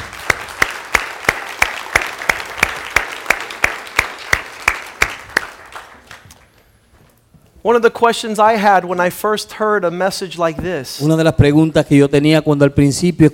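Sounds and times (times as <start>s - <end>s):
audience applause: 0.0s - 6.6s
speech: 7.6s - 13.3s.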